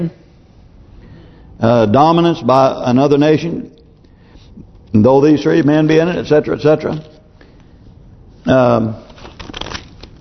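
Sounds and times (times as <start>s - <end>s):
speech: 0.0s - 0.2s, 1.6s - 3.8s, 4.9s - 7.1s, 8.4s - 9.0s
book pages turning: 9.0s - 10.2s.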